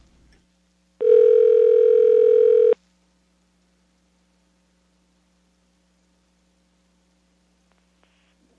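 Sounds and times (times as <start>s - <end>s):
telephone dialing tones: 1.0s - 2.8s.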